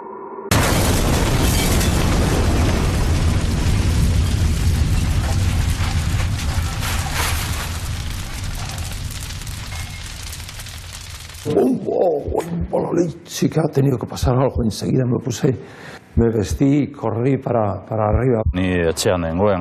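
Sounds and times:
bomb explosion: 0.5s - 12.8s
speech: 11.9s - 19.5s.

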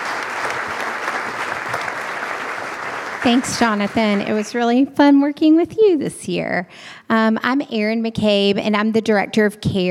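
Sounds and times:
audience applause: 0.0s - 4.7s
speech: 3.2s - 9.8s.

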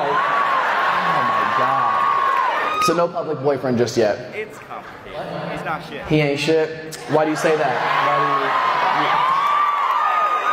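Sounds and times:
audience cheering and whooping: 0.0s - 3.0s, 7.2s - 10.5s
speech: 2.9s - 9.3s.

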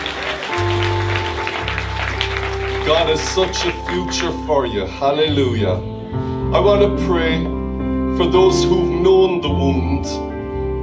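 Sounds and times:
audience applause: 0.0s - 4.5s
speech: 2.9s - 7.6s, 8.2s - 10.3s.

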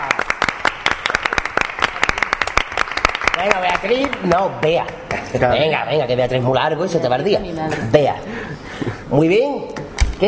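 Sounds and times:
applause: 0.0s - 5.3s
speech: 3.4s - 10.2s.

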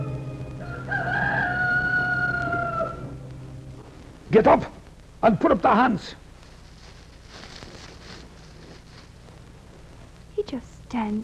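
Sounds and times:
rooster crowing: 0.0s - 3.3s
speech: 4.3s - 6.2s, 10.5s - 11.2s.

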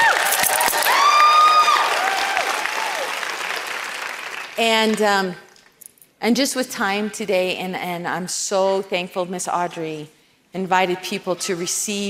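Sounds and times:
audience applause: 0.0s - 4.6s
speech: 4.6s - 5.4s, 6.2s - 12.0s.

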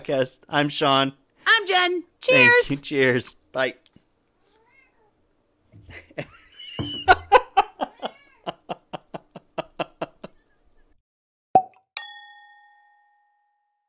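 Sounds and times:
speech: 0.0s - 3.8s, 5.9s - 7.0s
cat meowing and chirping: 4.4s - 5.1s
sharp chime-like ring: 12.0s - 13.8s.

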